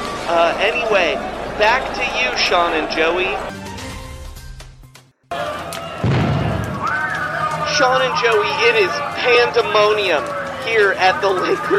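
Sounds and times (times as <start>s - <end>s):
speech: 0.3s - 3.6s, 7.8s - 11.7s
giant balloon exploding: 6.0s - 7.0s.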